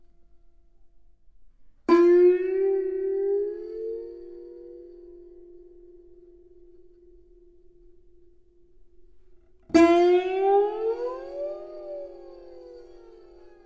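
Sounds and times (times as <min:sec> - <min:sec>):
kannel sliding melody on one string: 0:01.9 - 0:07.2, 0:09.7 - 0:13.6.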